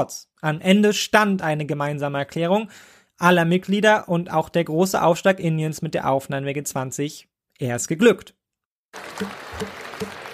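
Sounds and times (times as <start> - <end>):
speech: 0.0 - 10.2
applause from conference delegates in Delhi: 9.0 - 10.3.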